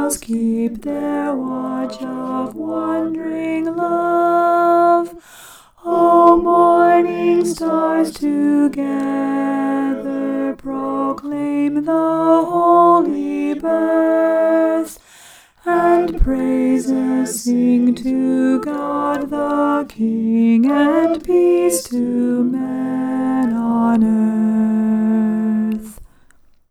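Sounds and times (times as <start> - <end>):
alto voice singing a Christmas carol: 0.0 - 26.2.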